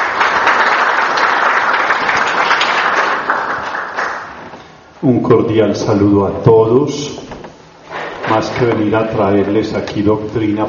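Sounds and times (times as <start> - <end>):
crowd applause: 0.0 - 4.5
speech: 5.0 - 7.2, 8.3 - 10.6.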